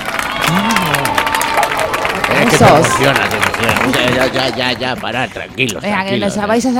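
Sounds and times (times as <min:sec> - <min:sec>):
audience applause: 0:00.0 - 0:06.3
speech: 0:02.6 - 0:06.7.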